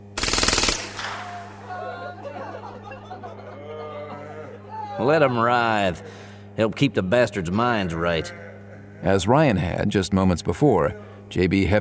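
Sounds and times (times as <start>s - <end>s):
machine pistol firing a long burst: 0.0s - 2.0s
laughter: 1.1s - 9.8s
speech: 5.0s - 8.4s, 9.0s - 11.7s.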